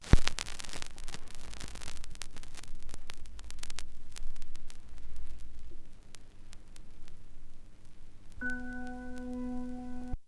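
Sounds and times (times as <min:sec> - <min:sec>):
vinyl crackle: 0:00.0 - 0:10.2.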